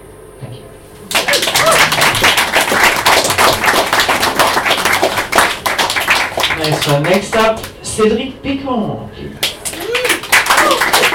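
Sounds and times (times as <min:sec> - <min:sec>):
audience clapping: 0:01.1 - 0:07.8, 0:09.4 - 0:11.1
speech: 0:06.8 - 0:09.4.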